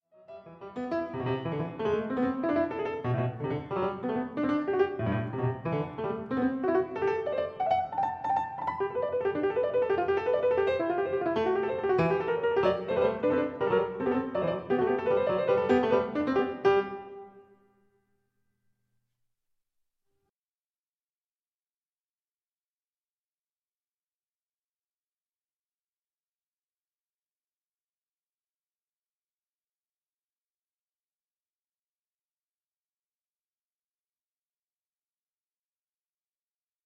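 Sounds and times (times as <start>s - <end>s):
variation for two keyboards: 0.4s - 17.5s.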